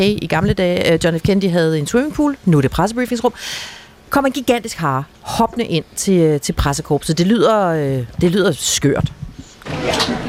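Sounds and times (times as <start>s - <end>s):
speech: 0.0s - 10.2s
door opening: 9.6s - 10.2s.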